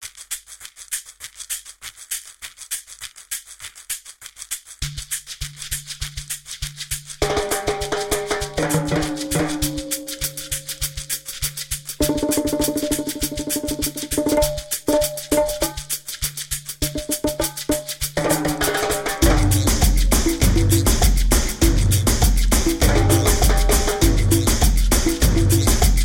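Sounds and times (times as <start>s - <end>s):
reggaeton music: 7.2s - 10.9s, 12.0s - 15.9s, 16.8s - 26.0s.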